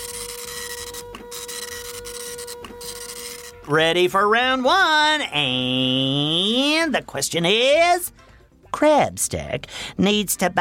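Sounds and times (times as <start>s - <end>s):
printer printing out a page: 0.0s - 3.7s
speech: 3.7s - 8.2s, 8.8s - 10.5s.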